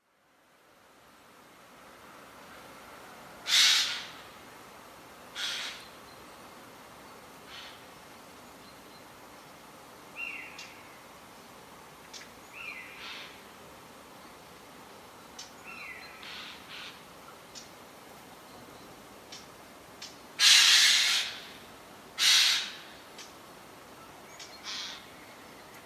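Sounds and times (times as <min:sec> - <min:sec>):
Garrulus glandarius: 0:03.4 - 0:04.2, 0:05.3 - 0:06.0, 0:07.4 - 0:07.9, 0:12.0 - 0:13.4, 0:15.3 - 0:17.7, 0:19.3 - 0:23.4, 0:24.0 - 0:25.8.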